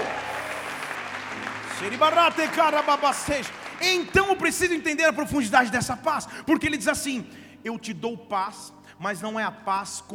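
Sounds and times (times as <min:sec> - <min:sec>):
audience clapping: 0:00.0 - 0:05.9
speech: 0:01.8 - 0:10.1.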